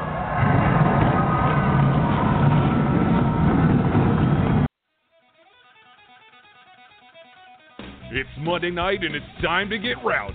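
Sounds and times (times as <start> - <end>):
race car engines starting and revving: 0.0 - 4.7
speech: 8.2 - 10.3.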